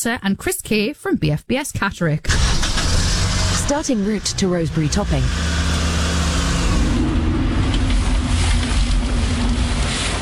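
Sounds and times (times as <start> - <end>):
speech: 0.0 - 2.6, 3.7 - 5.6
broad road noise: 2.3 - 10.2
car engine humming with a steady low rumble: 2.3 - 10.2.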